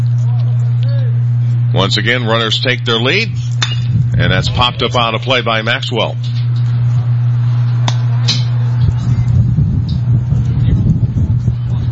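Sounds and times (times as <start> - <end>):
steady low hum: 0.0 - 11.8
speech: 1.8 - 6.4
wind gusts buffeting the microphone: 3.3 - 5.3, 8.6 - 11.8.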